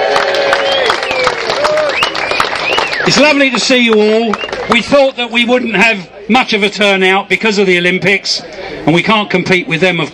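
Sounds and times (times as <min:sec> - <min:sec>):
whoops: 0:00.0 - 0:02.8
audience at a wrestlers' reunion cheering and clapping: 0:00.0 - 0:04.8
speech: 0:03.1 - 0:10.1.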